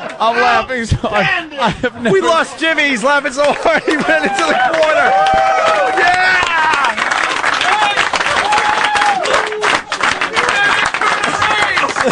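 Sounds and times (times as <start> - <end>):
laughter: 0.0 - 7.0, 9.7 - 12.0
speech: 0.2 - 6.2
crowd applause: 3.1 - 12.0
voices whooping and shouting: 3.9 - 7.0, 7.6 - 11.7.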